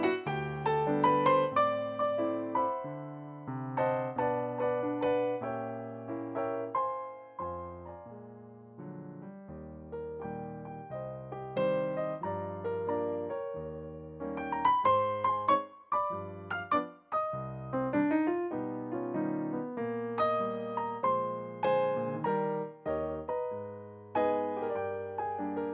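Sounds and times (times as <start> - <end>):
piano: 0.0 - 25.7.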